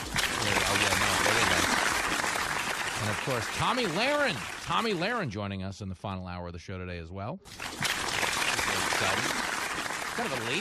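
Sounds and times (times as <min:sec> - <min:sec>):
crowd applause: 0:00.0 - 0:05.4, 0:07.8 - 0:10.5
speech: 0:03.2 - 0:07.8, 0:09.0 - 0:09.4, 0:10.2 - 0:10.5.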